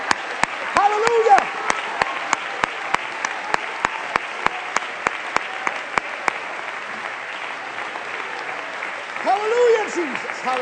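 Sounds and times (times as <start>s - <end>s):
audience clapping and cheering: 0.0s - 10.6s
speech: 10.5s - 10.6s.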